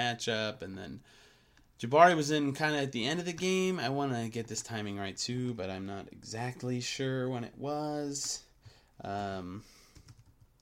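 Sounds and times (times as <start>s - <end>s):
speech: 0.1s - 8.4s, 9.0s - 9.8s
computer keyboard typing: 9.9s - 10.6s.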